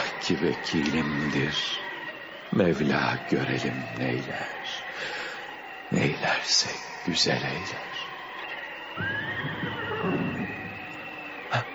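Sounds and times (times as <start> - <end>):
speech: 0.3 - 1.9, 2.5 - 5.2, 5.9 - 7.9, 9.0 - 9.3
white horse neighing in a storm: 9.0 - 10.5.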